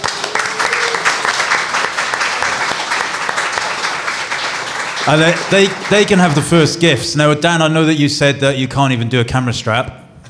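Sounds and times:
crowd applause: 0.0 - 6.9
speech: 5.0 - 10.0.

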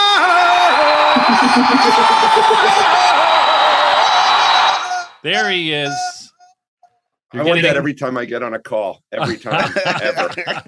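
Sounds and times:
crowd roaring and cheering to welcome a guest: 0.0 - 5.9
shouted voices: 0.0 - 6.4
laughter: 1.0 - 3.9, 9.2 - 10.6
speech: 1.3 - 3.4, 5.2 - 6.1, 7.3 - 10.6.

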